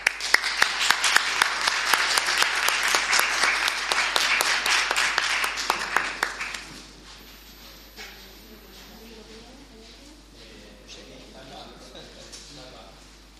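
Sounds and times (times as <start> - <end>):
crowd applause: 0.0 - 6.8.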